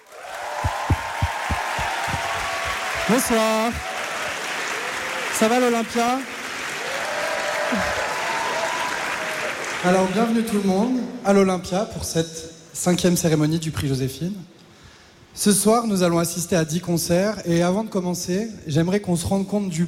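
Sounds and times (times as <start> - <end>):
audience applause in a concert hall: 0.0 - 10.4
speech: 3.1 - 3.9, 5.4 - 6.3, 7.7 - 8.0, 9.8 - 14.6, 15.4 - 19.8.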